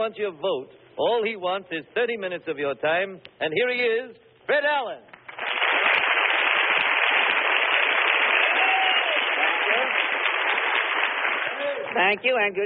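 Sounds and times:
speech: 0.0s - 5.1s, 12.0s - 12.6s
studio audience applause: 5.2s - 12.1s.

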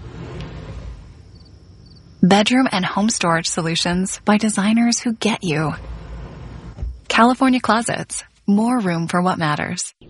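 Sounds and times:
soft close drawer sliding shut: 0.0s - 1.2s
speech: 2.2s - 6.0s, 7.2s - 10.0s.

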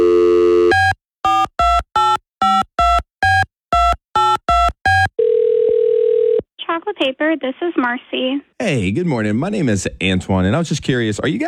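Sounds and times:
dial tone: 0.0s - 1.8s, 2.4s - 6.4s
speech: 7.0s - 11.4s.

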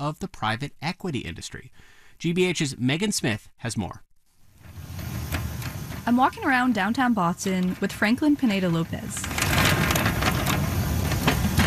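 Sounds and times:
speech: 0.0s - 4.1s, 6.1s - 9.6s
wheelchair with a wobbly wheel rolling: 4.6s - 11.6s.

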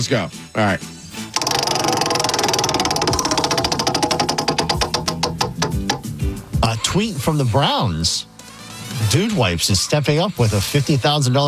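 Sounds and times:
speech: 0.0s - 1.0s, 6.8s - 8.3s, 8.9s - 11.4s
prize wheel spinning and clicking: 1.4s - 6.1s.

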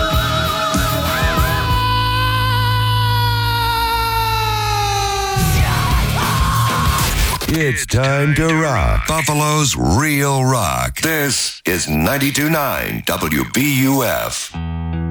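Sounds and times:
rock singer screaming: 0.0s - 9.2s
speech: 7.6s - 14.8s.

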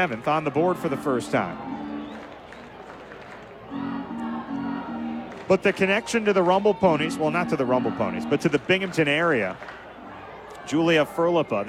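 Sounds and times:
speech: 0.0s - 1.9s, 5.5s - 9.8s, 10.7s - 11.6s
baseball crowd cheering: 0.0s - 11.6s.

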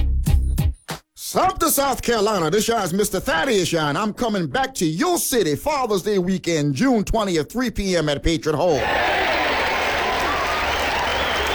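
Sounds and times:
speech: 1.3s - 9.2s
audience applause: 8.7s - 11.5s.

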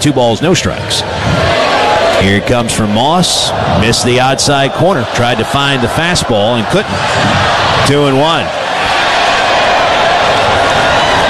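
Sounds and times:
speech: 0.0s - 1.6s, 2.2s - 8.9s
students applauding a passing train: 8.3s - 11.2s.

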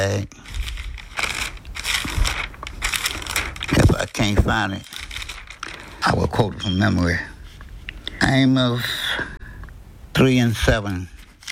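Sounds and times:
speech: 0.0s - 0.6s, 4.0s - 4.9s, 6.0s - 7.3s, 8.2s - 9.0s, 10.2s - 11.2s
Bible pages flipped in a search for the Book of Amos: 0.0s - 7.9s, 11.2s - 11.4s.

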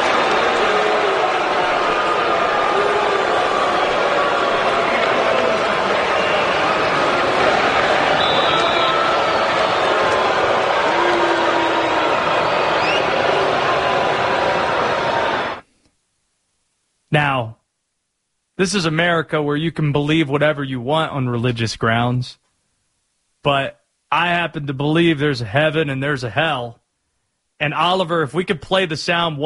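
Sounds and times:
huge stadium crowd booing a returning player: 0.0s - 15.6s
speech: 18.6s - 22.4s, 23.4s - 26.8s, 27.6s - 29.4s.

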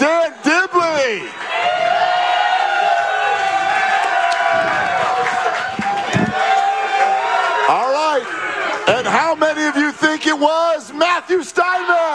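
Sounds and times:
crowd applauding: 0.0s - 10.5s
crowd making noise: 0.0s - 12.1s.

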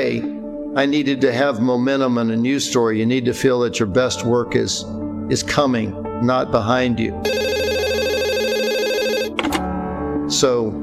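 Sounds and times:
speech: 0.1s - 7.5s, 10.3s - 10.8s
telephone ringing with electronic trill: 7.2s - 9.6s.

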